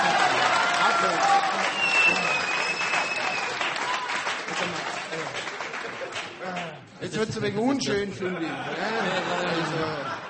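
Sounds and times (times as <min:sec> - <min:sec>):
audience applause: 0:00.0 - 0:06.8
speech: 0:07.2 - 0:10.2
laughter: 0:08.2 - 0:10.2.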